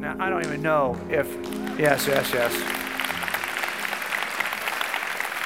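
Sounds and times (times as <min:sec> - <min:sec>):
speech: 0:00.1 - 0:02.8
audience applause: 0:00.4 - 0:05.4.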